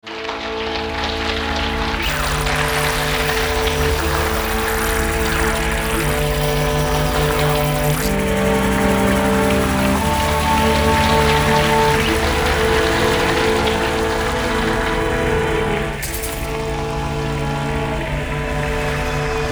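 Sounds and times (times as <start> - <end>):
soundscape: 0.0 - 19.5.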